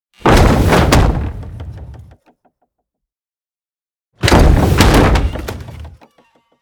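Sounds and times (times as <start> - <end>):
medieval catapult: 0.2 - 2.2, 4.2 - 6.2.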